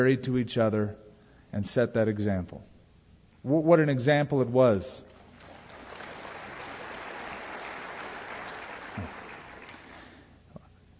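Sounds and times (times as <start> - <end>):
speech: 0.0 - 2.7, 3.4 - 5.1
weak audience clapping: 5.1 - 10.2.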